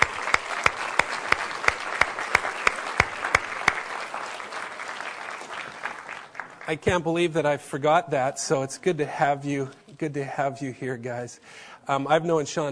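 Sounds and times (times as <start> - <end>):
audience clapping: 0.0 - 7.2
speech: 6.7 - 12.7.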